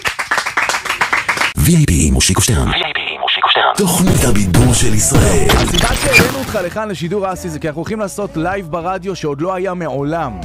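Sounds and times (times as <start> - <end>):
audience clapping for a singer in a radio studio: 0.0 - 1.7
speech: 1.6 - 10.4.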